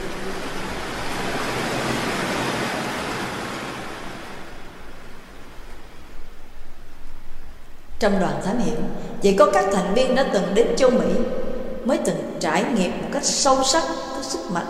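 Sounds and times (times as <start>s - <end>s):
ocean wave surging in and subsiding into foam and water: 0.0s - 8.0s
speech: 8.0s - 14.6s.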